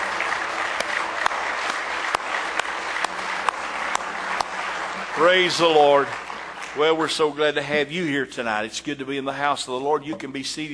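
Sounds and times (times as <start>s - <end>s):
audience applause: 0.0s - 8.0s
speech: 5.2s - 6.2s, 6.8s - 10.7s.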